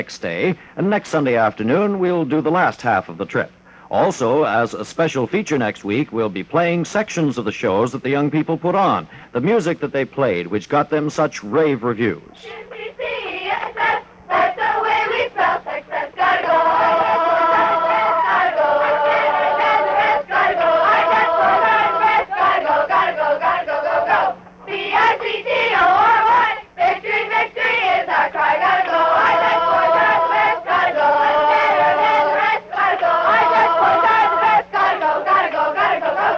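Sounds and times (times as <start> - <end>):
speech: 0.0 - 12.9
youth drum and bugle corps cadets chanting together: 12.4 - 36.3.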